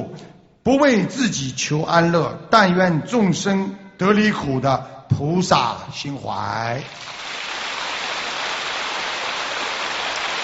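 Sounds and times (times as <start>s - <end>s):
speech: 0.7s - 7.4s
crowd clapping: 6.9s - 10.4s.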